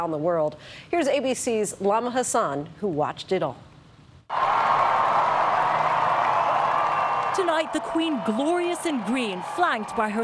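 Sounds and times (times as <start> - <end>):
speech: 0.0 - 3.7, 4.3 - 4.8, 7.4 - 10.2
crowd cheering for Queen Elizabeth at the Buckingham Palace balcony: 4.3 - 10.2.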